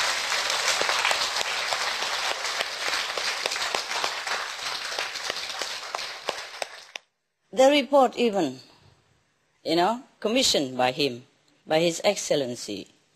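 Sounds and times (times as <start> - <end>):
audience applause: 0.0 - 7.0
speech: 7.6 - 8.7, 9.6 - 12.9.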